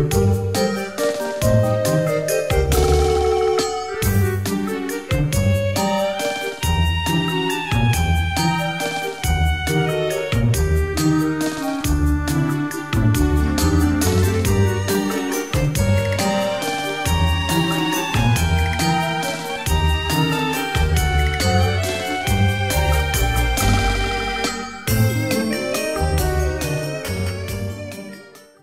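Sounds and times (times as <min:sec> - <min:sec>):
haunted game music: 0:00.2 - 0:28.3.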